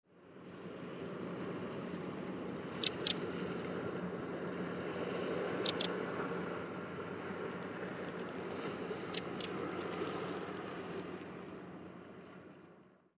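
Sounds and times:
low background hum: 0:00.3 - 0:13.0
Eurasian wren ticking calls: 0:02.7 - 0:03.2, 0:05.6 - 0:06.0, 0:09.0 - 0:09.6.

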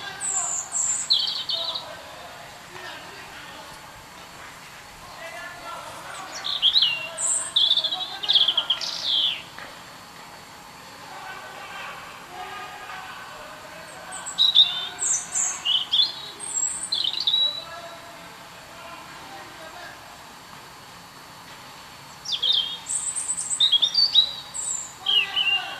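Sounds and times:
European robin song of high trilled and warbled notes: 0:00.0 - 0:02.0, 0:06.2 - 0:09.5, 0:14.2 - 0:17.7, 0:22.2 - 0:25.7.

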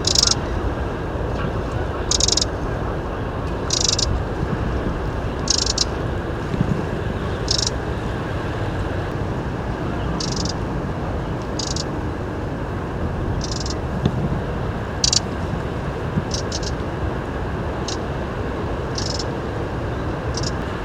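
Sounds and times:
Eurasian wren rattling calls: 0:00.0 - 0:00.4, 0:02.1 - 0:02.5, 0:03.6 - 0:04.1, 0:05.4 - 0:05.9, 0:07.4 - 0:07.8, 0:10.2 - 0:10.6, 0:11.5 - 0:11.9, 0:13.4 - 0:13.8, 0:15.0 - 0:15.2, 0:16.3 - 0:16.8, 0:17.8 - 0:18.0, 0:18.9 - 0:19.3, 0:20.3 - 0:20.6
heavy continuous low-pitched rumbling noise: 0:00.0 - 0:20.8.

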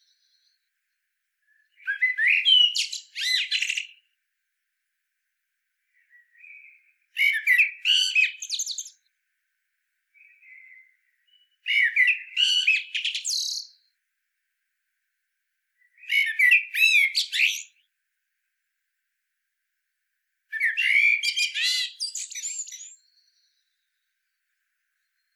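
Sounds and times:
common blackbird singing: 0:00.0 - 0:00.7, 0:01.5 - 0:04.1, 0:05.9 - 0:09.1, 0:10.2 - 0:13.9, 0:15.8 - 0:17.9, 0:20.5 - 0:24.4, 0:25.0 - 0:25.3.

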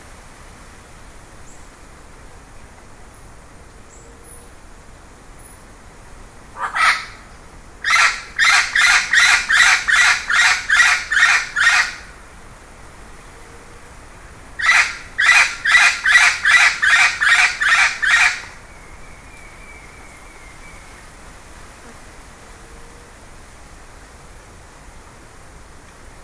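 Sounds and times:
background hiss: 0:00.0 - 0:26.2
bird harsh calls: 0:07.8 - 0:12.0, 0:14.6 - 0:21.0.

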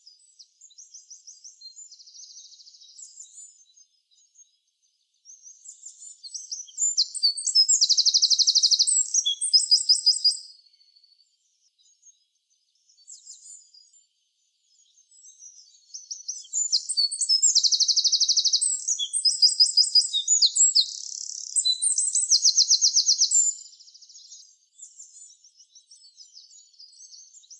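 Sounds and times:
Eurasian wren singing: 0:05.8 - 0:10.4, 0:15.1 - 0:27.5.

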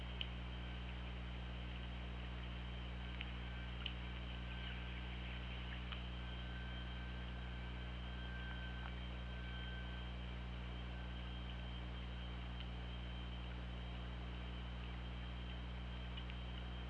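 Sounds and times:
low hum and hiss: 0:00.0 - 0:16.8
killer whale tonal calls: 0:04.3 - 0:10.2.

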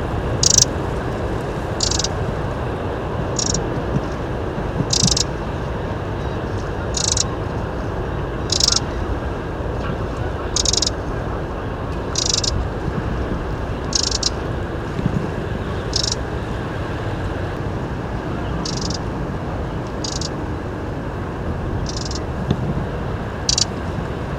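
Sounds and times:
heavy low rumble: 0:00.0 - 0:24.3
Eurasian wren calling: 0:00.4 - 0:00.7, 0:01.8 - 0:02.1, 0:03.4 - 0:03.6, 0:04.9 - 0:05.3, 0:06.9 - 0:07.3, 0:08.5 - 0:08.9, 0:10.6 - 0:11.0, 0:12.1 - 0:12.6, 0:13.9 - 0:14.4, 0:15.9 - 0:16.2, 0:18.6 - 0:19.0, 0:19.9 - 0:20.3, 0:21.9 - 0:22.2, 0:23.5 - 0:23.7.

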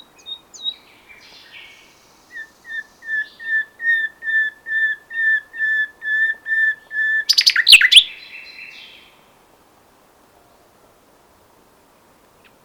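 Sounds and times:
common nightingale singing: 0:00.0 - 0:09.2.

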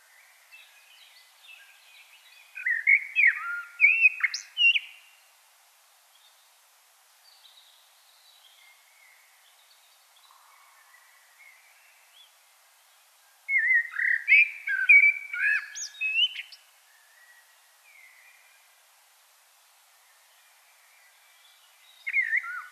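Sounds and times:
common blackbird singing: 0:00.2 - 0:05.1, 0:13.5 - 0:18.6, 0:21.0 - 0:22.7.

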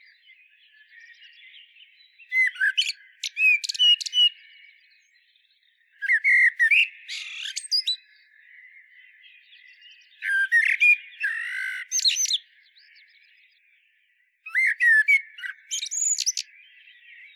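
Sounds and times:
common blackbird singing: 0:00.0 - 0:17.3.

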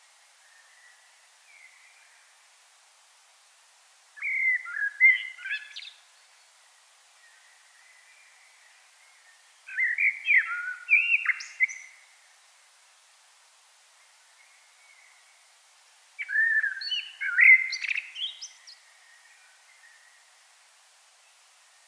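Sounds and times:
common blackbird song: 0:00.4 - 0:02.4, 0:04.2 - 0:12.2, 0:14.0 - 0:15.6, 0:16.2 - 0:20.5.

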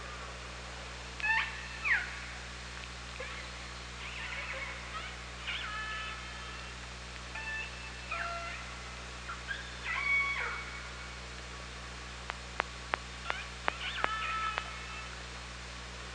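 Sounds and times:
low hydrophone hum: 0:00.0 - 0:16.1
orca pulsed calls: 0:01.1 - 0:15.3
orca echolocation clicks: 0:12.2 - 0:14.7.

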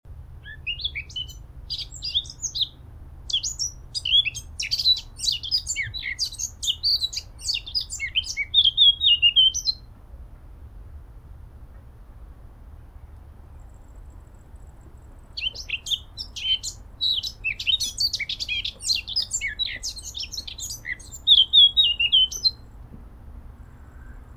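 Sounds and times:
light background hiss: 0:00.1 - 0:24.3
Eurasian blackcap singing: 0:00.4 - 0:09.8, 0:15.4 - 0:22.6.

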